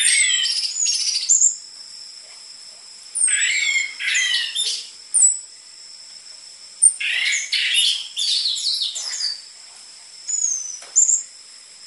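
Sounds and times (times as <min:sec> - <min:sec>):
orange-headed thrush singing varied whistles and twittering: 0:00.0 - 0:01.6, 0:03.2 - 0:05.5, 0:06.8 - 0:09.5, 0:10.3 - 0:11.4.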